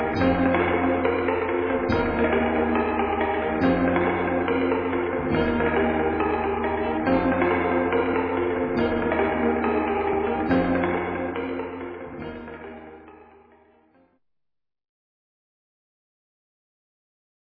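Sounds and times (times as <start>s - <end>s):
guitar: 0.0s - 14.0s.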